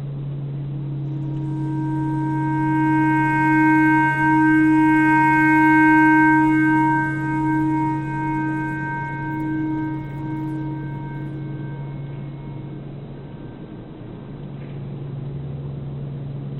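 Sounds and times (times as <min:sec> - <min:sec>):
clarinet playing a simple tornado siren imitation: 0:00.9 - 0:12.8.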